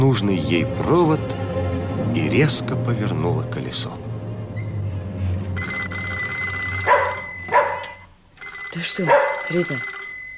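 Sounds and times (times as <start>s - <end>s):
speech: 0.0s - 1.4s, 2.1s - 4.0s, 8.8s - 10.0s
telephone ringing at night: 5.6s - 10.3s.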